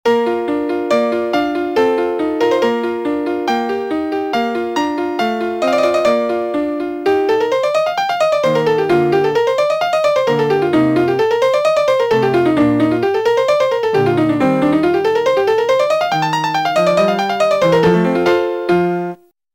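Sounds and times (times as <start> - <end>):
melody: 0.1 - 19.2.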